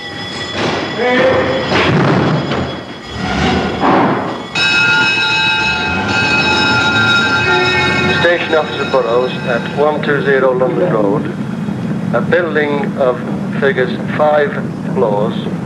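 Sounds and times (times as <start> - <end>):
fire engine bells clanging: 0.0 - 11.6
fire engines roaring off: 0.0 - 15.6
speech: 1.0 - 1.5, 8.6 - 11.5, 12.1 - 15.6
fire engine horn blaring: 4.6 - 8.8.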